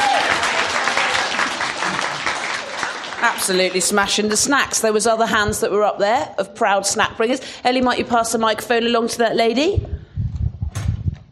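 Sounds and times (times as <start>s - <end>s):
audience applause: 0.0s - 4.0s
speech: 3.4s - 9.9s.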